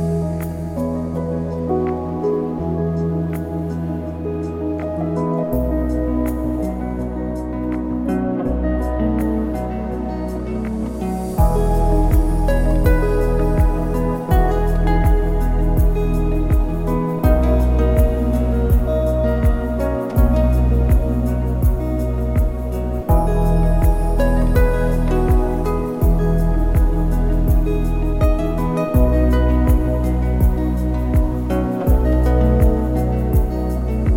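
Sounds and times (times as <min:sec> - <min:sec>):
luxury ambient music: 0:00.0 - 0:34.1.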